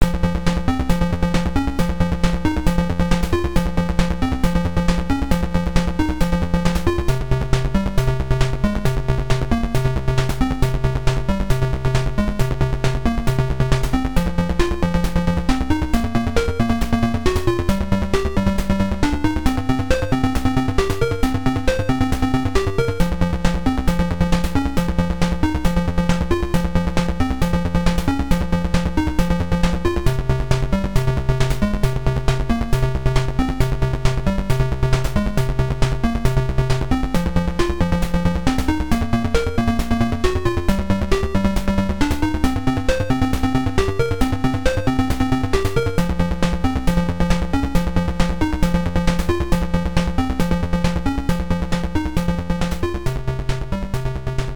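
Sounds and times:
PSG chiptune music: 0.0 - 54.5.

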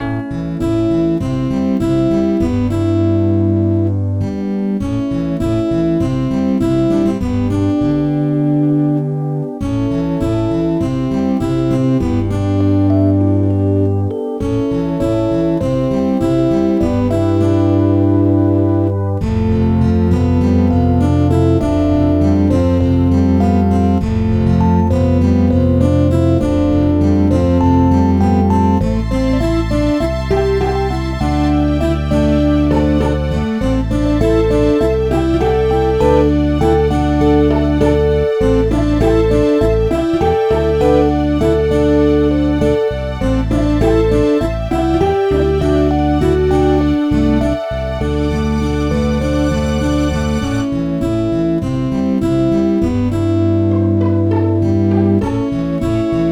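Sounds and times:
soft music: 0.0 - 56.3.

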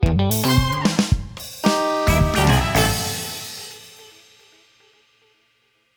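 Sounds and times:
disco DJ outro music: 0.0 - 4.3.

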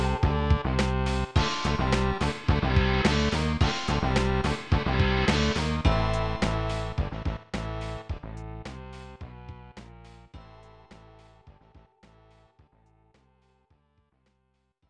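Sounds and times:
tension music: 0.0 - 9.3.

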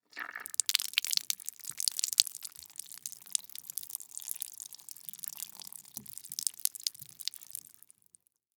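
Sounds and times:
cantaloupe liquid dripping: 0.1 - 8.0.

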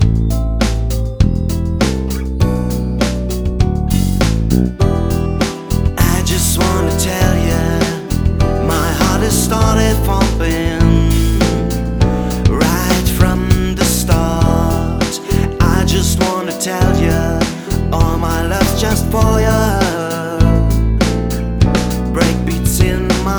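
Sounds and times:
guitar jam: 0.0 - 23.3.

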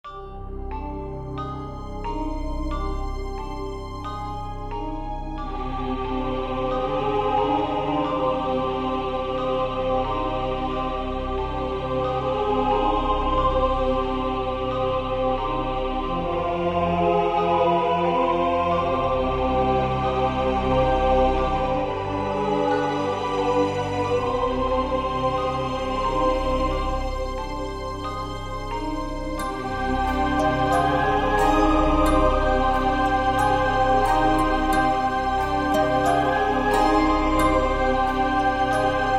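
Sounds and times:
haunted valley music: 0.1 - 39.1.

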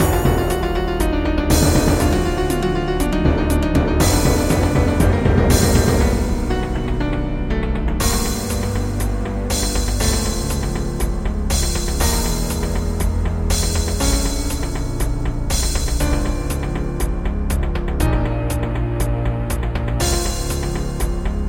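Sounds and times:
doom drums: 0.0 - 21.4.

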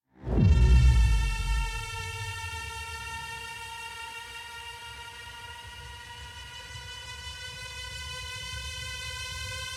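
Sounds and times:
suspense music: 0.2 - 7.2.

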